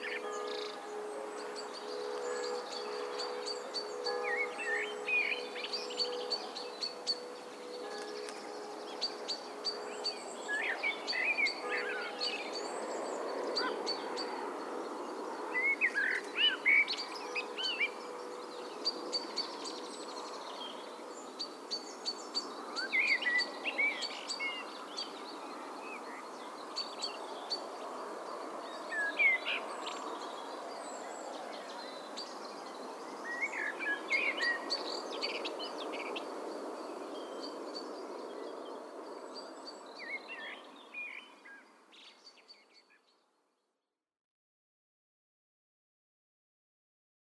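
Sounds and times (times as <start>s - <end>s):
bells ringing: 0.0s - 15.5s
blackbirds singing: 0.0s - 43.1s.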